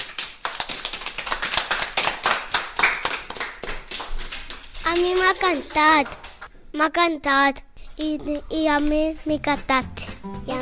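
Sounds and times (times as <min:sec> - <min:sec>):
small group applause: 0:00.0 - 0:06.5
speech: 0:04.9 - 0:10.5.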